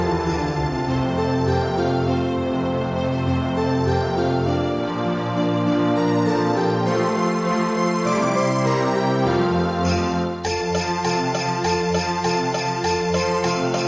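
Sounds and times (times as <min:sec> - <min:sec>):
harmonica melody in F: 0:00.0 - 0:13.8.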